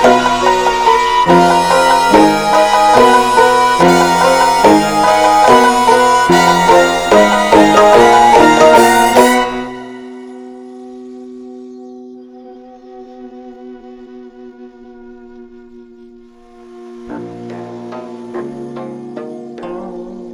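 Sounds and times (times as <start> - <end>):
gugak orchestra playing: 0.0 - 10.3.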